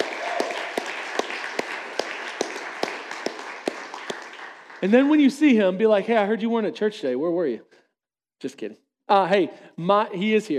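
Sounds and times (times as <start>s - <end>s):
audience applause: 0.0s - 5.5s
speech: 4.8s - 7.7s, 8.4s - 10.5s.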